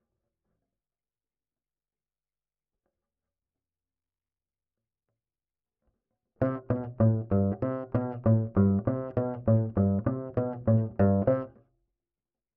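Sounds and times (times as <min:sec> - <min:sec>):
bass line: 0:06.4 - 0:11.5.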